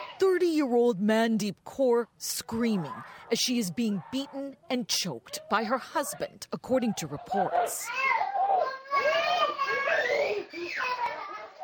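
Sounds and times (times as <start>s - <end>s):
two young daughters crying: 0.0s - 0.2s, 7.8s - 11.6s
speech: 0.2s - 8.2s.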